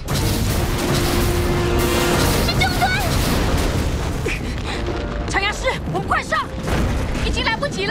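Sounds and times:
explosion: 0.1s - 7.7s.

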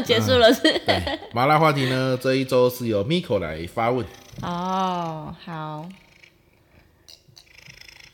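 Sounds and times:
laughter: 0.0s - 2.2s
speech: 0.0s - 6.0s
cat purring loudly: 4.0s - 6.5s, 7.4s - 8.1s.

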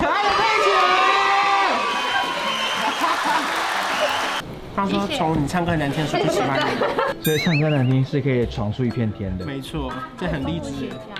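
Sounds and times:
audience cheering: 0.6s - 4.4s
audience applause: 1.7s - 4.4s
speech: 4.8s - 11.1s.

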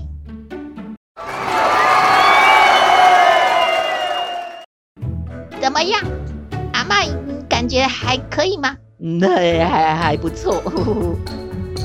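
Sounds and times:
applause sound effect, many people clapping: 1.2s - 4.7s
cheers and whistles: 1.2s - 4.7s
speech: 5.6s - 6.2s, 6.9s - 11.4s.

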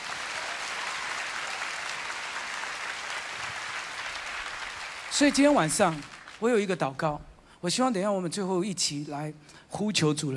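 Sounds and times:
audience clapping loudly: 0.0s - 6.8s
speech: 5.2s - 10.3s.

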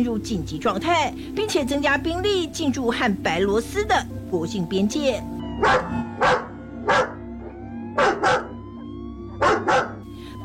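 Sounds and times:
speech: 0.0s - 6.4s
dogs barking: 5.6s - 8.6s, 9.3s - 10.0s.

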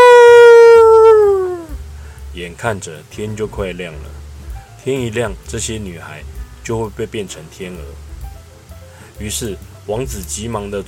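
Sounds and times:
rooster crowing: 0.0s - 1.8s
speech: 2.6s - 4.2s, 4.8s - 8.0s, 9.2s - 10.8s.

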